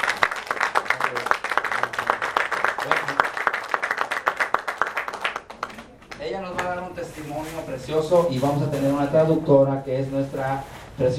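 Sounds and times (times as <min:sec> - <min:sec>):
audience applause welcoming the special guest speaker: 0:00.0 - 0:06.0
speech: 0:07.0 - 0:11.1.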